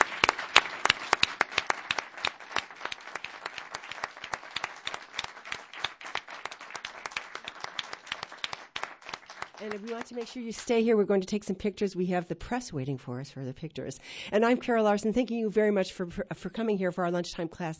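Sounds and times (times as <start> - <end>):
round of applause: 0.0 - 10.7
speech: 9.6 - 17.7.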